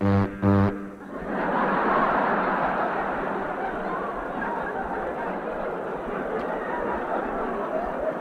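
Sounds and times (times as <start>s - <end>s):
diesel electric locomotive horn: 0.0s - 1.0s
laughter: 1.0s - 8.2s.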